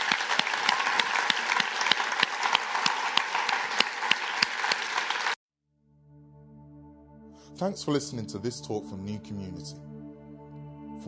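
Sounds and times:
audience applause: 0:00.0 - 0:05.4
speech: 0:07.6 - 0:10.0.

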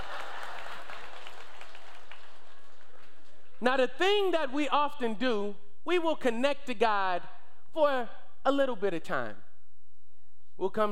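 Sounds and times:
audience clapping: 0:00.0 - 0:03.6
speech: 0:03.6 - 0:09.4, 0:10.6 - 0:10.9.

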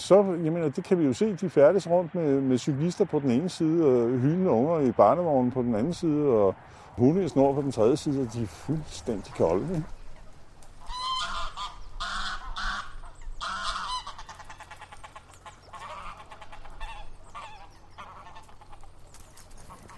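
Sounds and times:
speech: 0:00.1 - 0:10.0
steady low rumble: 0:00.1 - 0:19.9
geese honking in harsh, nasal calls: 0:07.8 - 0:19.9.

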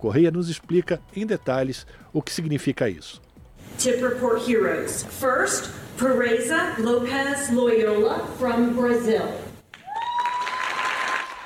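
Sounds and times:
speech: 0:00.0 - 0:09.5
audience applause at award ceremony: 0:09.7 - 0:11.4.

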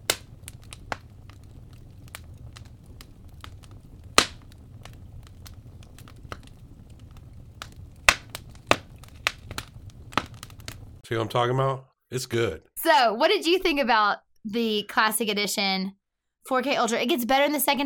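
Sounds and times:
burning wood fire crackling: 0:00.0 - 0:11.6
speech: 0:11.1 - 0:17.8.

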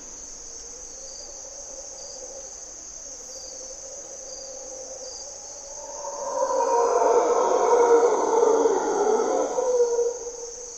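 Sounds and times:
high insect buzzing: 0:00.0 - 0:10.7
mantled howler monkey roaring: 0:05.8 - 0:10.4.

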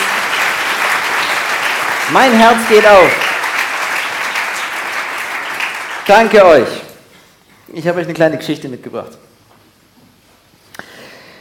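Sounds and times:
audience applause for musicians: 0:00.0 - 0:06.8
speech: 0:02.1 - 0:03.2, 0:06.1 - 0:06.8, 0:07.7 - 0:09.3.

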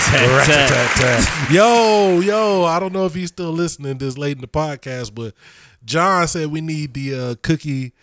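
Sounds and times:
speech: 0:00.2 - 0:08.0
crowd cheering: 0:01.2 - 0:02.2.

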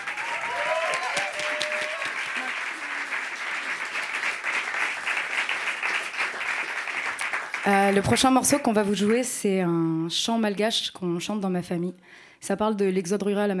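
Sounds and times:
voices and whoops: 0:00.0 - 0:03.1
audience applause: 0:00.0 - 0:08.6
speech: 0:07.6 - 0:13.5.

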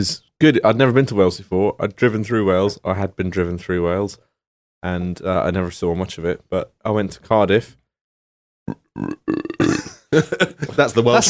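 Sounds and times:
speech: 0:00.0 - 0:07.8, 0:08.7 - 0:11.2
voice making burp-like croaks imitating a frog: 0:08.7 - 0:10.0
laughter: 0:09.9 - 0:11.2.

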